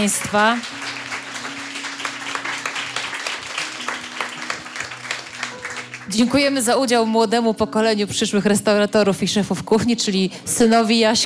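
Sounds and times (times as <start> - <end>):
speech: 0.0 - 0.8, 6.1 - 11.2
audience applause: 0.0 - 6.2.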